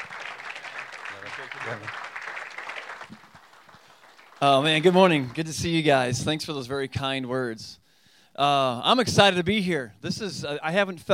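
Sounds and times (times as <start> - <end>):
audience clapping: 0.0 - 6.2
speech: 1.4 - 2.0, 4.4 - 7.8, 8.4 - 11.1.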